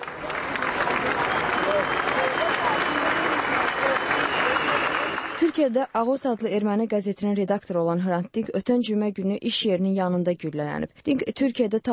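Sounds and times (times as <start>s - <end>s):
tens of thousands clapping at Hrant Dink's funeral procession: 0.0s - 6.6s
speech: 5.6s - 11.9s.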